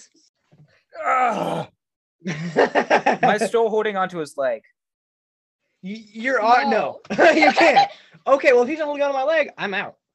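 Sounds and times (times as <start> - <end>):
voice imitating a scream: 1.0 - 1.7
speech: 1.0 - 4.8, 5.8 - 10.0
laughter: 2.3 - 3.5, 6.7 - 8.0.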